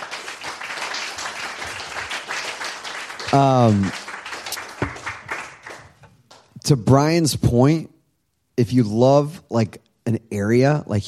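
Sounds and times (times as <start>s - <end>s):
audience applause: 0.0s - 6.4s
speech: 3.3s - 4.0s, 6.7s - 7.9s, 8.6s - 11.0s.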